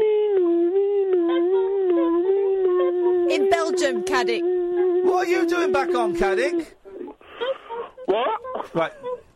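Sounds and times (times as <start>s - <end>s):
voice imitating a passing ambulance siren: 0.0s - 7.1s
speech: 3.6s - 6.8s, 8.2s - 9.0s.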